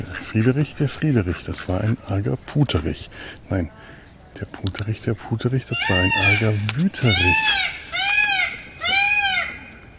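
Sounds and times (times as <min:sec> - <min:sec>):
speech: 0:00.3 - 0:07.8
peacock screaming call: 0:05.8 - 0:09.8.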